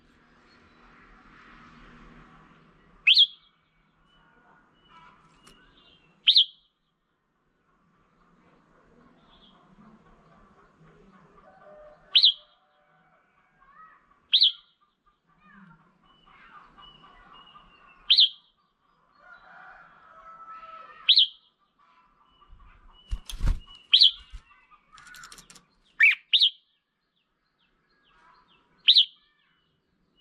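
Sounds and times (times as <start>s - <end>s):
Red-whiskered bulbul sharp chirps: 3.0s - 4.2s, 4.8s - 6.8s, 14.3s - 14.8s, 16.1s - 18.6s, 21.0s - 26.9s, 28.0s - 30.2s.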